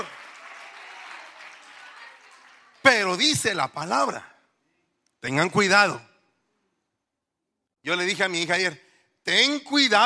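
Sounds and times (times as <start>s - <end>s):
audience applause: 0.0s - 3.1s
speech: 2.8s - 4.3s, 5.2s - 6.1s, 7.8s - 10.0s.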